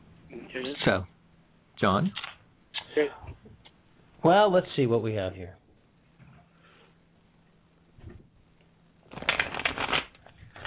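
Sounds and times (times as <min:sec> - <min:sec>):
speech: 0:00.3 - 0:01.2, 0:01.8 - 0:02.3, 0:03.0 - 0:03.4, 0:04.2 - 0:05.6
playing cards shuffling: 0:09.1 - 0:10.6.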